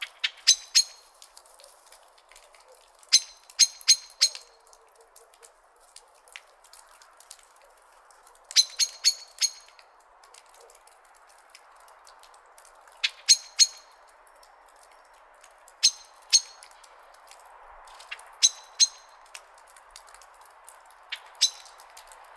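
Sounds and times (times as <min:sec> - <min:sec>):
common blackbird metallic chink calls: 0:00.1 - 0:01.1, 0:03.1 - 0:04.6, 0:08.6 - 0:09.8, 0:13.0 - 0:14.0, 0:15.8 - 0:16.7, 0:18.4 - 0:19.1, 0:21.1 - 0:21.7.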